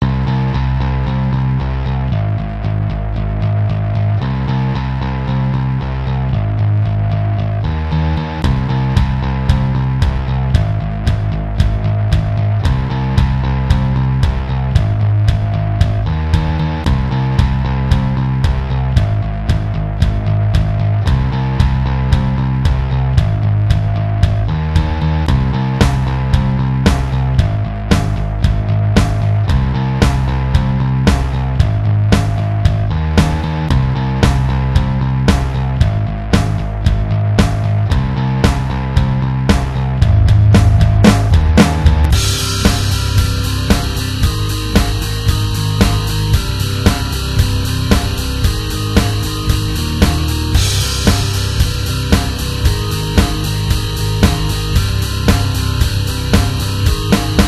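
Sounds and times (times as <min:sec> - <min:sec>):
instrumental music: 0:00.0 - 0:57.4.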